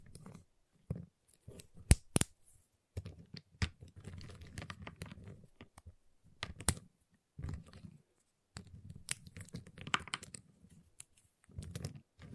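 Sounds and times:
giant chocolate bar tapped, cut and snapped: 0.1s - 2.4s, 3.0s - 7.8s, 8.5s - 12.2s.

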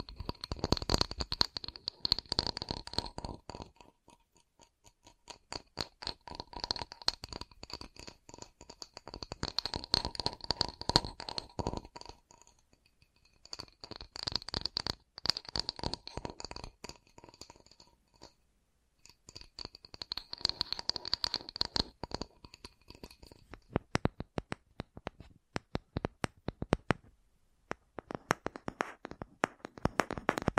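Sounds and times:
sharp crisp taps and scratchy clicks: 0.0s - 18.4s, 19.0s - 30.5s.

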